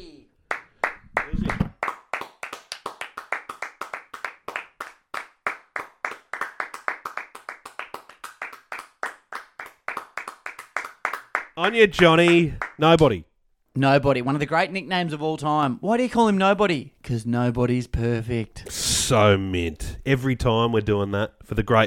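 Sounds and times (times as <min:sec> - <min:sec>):
small group clapping: 0:00.4 - 0:13.1
speech: 0:11.6 - 0:21.8.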